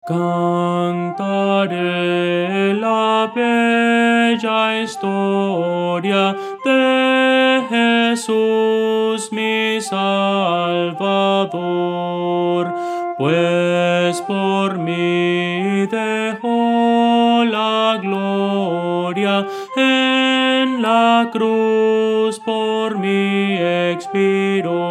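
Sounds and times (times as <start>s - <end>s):
soprano singing: 0.0s - 24.9s.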